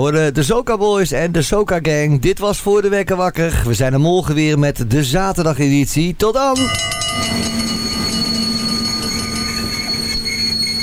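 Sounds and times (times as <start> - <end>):
speech: 0.0 - 7.7
metallic whine: 6.6 - 10.8
intercity train running on rails: 6.7 - 10.8.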